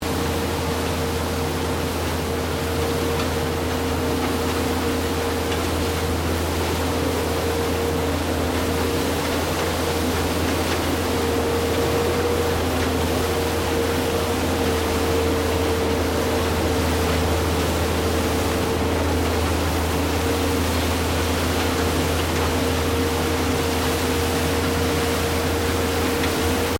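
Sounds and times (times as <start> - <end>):
small street cleaning vehicle operating: 0.0 - 26.7.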